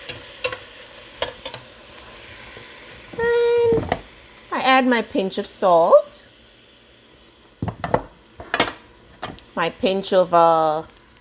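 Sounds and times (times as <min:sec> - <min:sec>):
onion, garlic and tomato sautéing in a pan: 0:00.0 - 0:11.2
speech: 0:04.8 - 0:06.3, 0:09.6 - 0:11.0.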